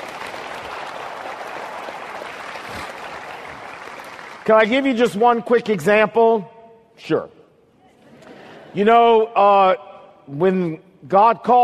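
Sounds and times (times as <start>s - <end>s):
audience clapping: 0.0s - 5.2s
speech: 4.5s - 7.4s, 8.7s - 11.6s.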